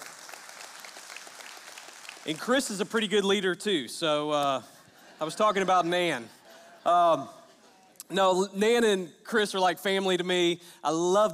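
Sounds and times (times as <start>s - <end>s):
audience applause: 0.0s - 2.8s
speech: 2.2s - 7.4s, 8.1s - 11.3s
laughter: 4.7s - 8.0s.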